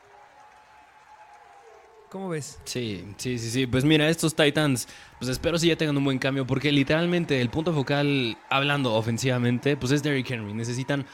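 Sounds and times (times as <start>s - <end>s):
applause from team staff: 0.0s - 11.1s
speech: 2.1s - 11.1s.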